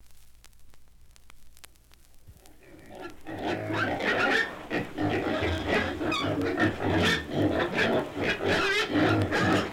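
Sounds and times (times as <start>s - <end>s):
piglets squealing and grunting: 2.5s - 9.7s.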